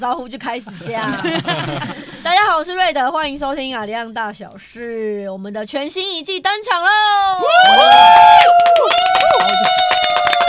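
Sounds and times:
speech: 0.0s - 9.9s
laughter: 0.7s - 2.3s
large crowd cheering: 7.4s - 10.4s.

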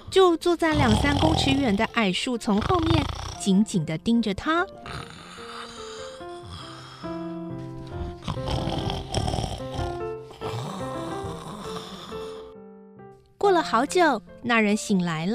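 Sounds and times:
speech: 0.1s - 4.8s, 13.6s - 15.3s
loud snoring: 0.6s - 3.6s, 4.8s - 12.6s.

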